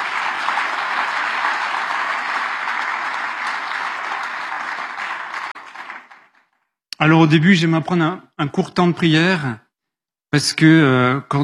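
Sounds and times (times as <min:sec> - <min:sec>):
audience applause: 0:00.0 - 0:06.6
speech: 0:07.0 - 0:09.6, 0:10.3 - 0:11.4.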